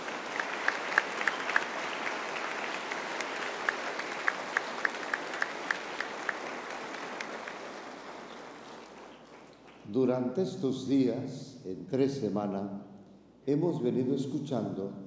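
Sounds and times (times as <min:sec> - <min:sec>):
audience applause: 0:00.0 - 0:09.9
speech: 0:09.9 - 0:12.9, 0:13.5 - 0:15.0.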